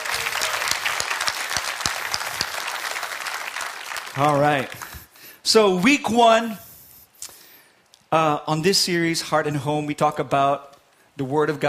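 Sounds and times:
audience clapping: 0.0s - 5.2s
speech: 4.2s - 4.8s, 5.5s - 6.6s, 8.1s - 11.6s.

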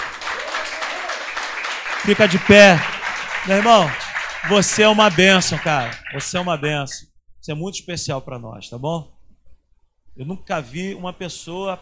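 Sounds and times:
crowd applauding: 0.0s - 6.8s
speech: 2.0s - 9.2s, 10.2s - 11.7s.

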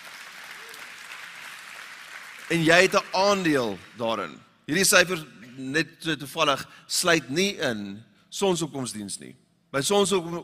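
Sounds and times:
audience clapping hands: 0.0s - 4.3s
speech: 2.5s - 10.4s.

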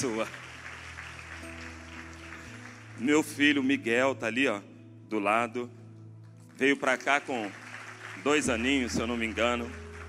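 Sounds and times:
speech: 0.0s - 0.4s, 3.0s - 5.8s, 6.6s - 7.6s, 8.2s - 9.8s
audience applause: 0.0s - 3.0s, 6.9s - 10.0s.

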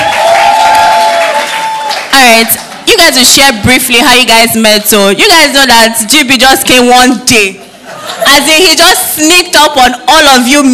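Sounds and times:
crowd clapping: 0.0s - 2.8s
speech: 2.3s - 10.7s.

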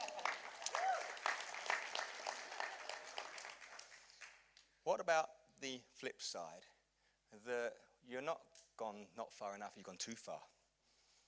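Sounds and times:
audience applause: 0.0s - 4.4s
speech: 4.9s - 10.5s.

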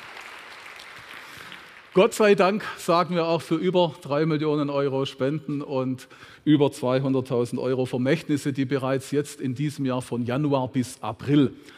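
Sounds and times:
audience clapping: 0.0s - 2.5s
speech: 2.0s - 11.7s.

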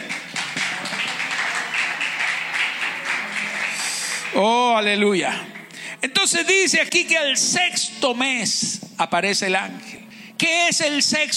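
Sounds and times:
audience applauding: 0.0s - 5.7s
speech: 4.4s - 11.3s.

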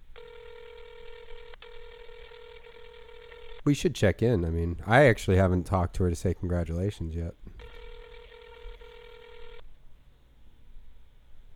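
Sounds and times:
telephone ringing tone: 0.1s - 3.8s, 7.6s - 9.6s
speech: 3.6s - 7.4s.

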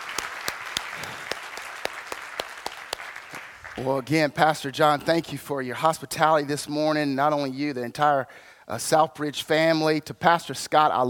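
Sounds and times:
crowd clapping: 0.0s - 4.2s
speech: 3.8s - 11.0s.

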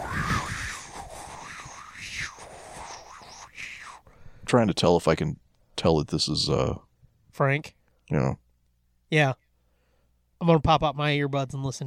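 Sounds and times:
voice imitating wind noises: 0.0s - 4.0s
speech: 4.5s - 8.4s, 9.1s - 9.4s, 10.4s - 11.8s.

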